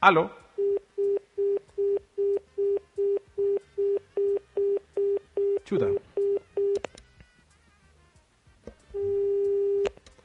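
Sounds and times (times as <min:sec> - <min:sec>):
speech: 0:00.0 - 0:00.4, 0:05.7 - 0:06.0
telephone busy tone after dropped call: 0:00.6 - 0:06.8, 0:09.0 - 0:09.9.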